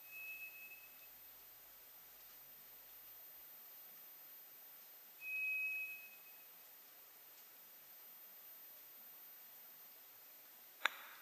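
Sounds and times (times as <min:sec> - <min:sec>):
low hiss: 0:00.0 - 0:11.2
White's thrush whistle: 0:05.2 - 0:06.3.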